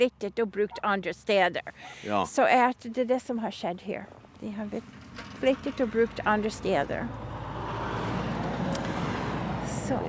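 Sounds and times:
speech: 0.0s - 7.4s, 9.9s - 10.0s
fish farming industry vehicle driving past in northern Norway: 4.8s - 10.0s.

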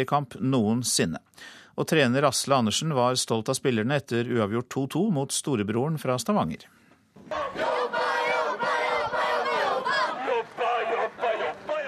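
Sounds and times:
speech: 0.0s - 7.6s
football home supporters chanting in unison: 7.2s - 11.8s.

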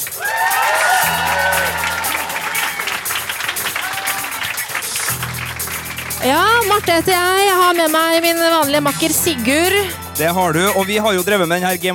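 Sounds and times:
whoops and cheers: 0.0s - 4.9s
crowd clapping: 0.0s - 9.8s
speech: 6.2s - 11.9s.

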